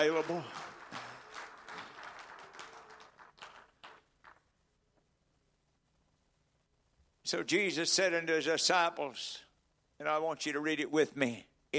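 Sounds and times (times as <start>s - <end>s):
speech: 0.0s - 0.6s, 7.3s - 9.4s, 10.0s - 11.7s
audience clapping hands: 0.0s - 4.6s.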